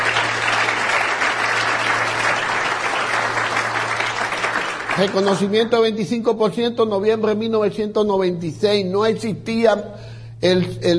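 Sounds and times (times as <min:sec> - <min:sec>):
audience applause: 0:00.0 - 0:05.6
speech: 0:05.0 - 0:10.9.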